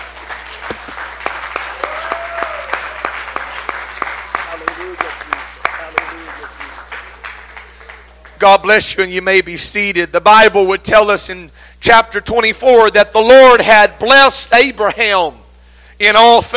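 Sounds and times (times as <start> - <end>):
audience clapping hands: 0.0 - 8.7
speech: 8.4 - 15.4, 16.0 - 16.5.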